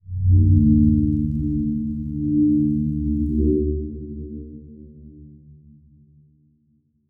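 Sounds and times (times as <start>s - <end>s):
transition scanner sweep: 0.2s - 3.6s.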